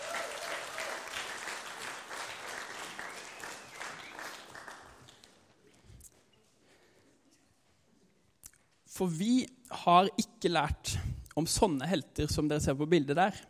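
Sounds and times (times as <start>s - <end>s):
audience applause: 0.0s - 5.4s
speech: 9.0s - 13.4s.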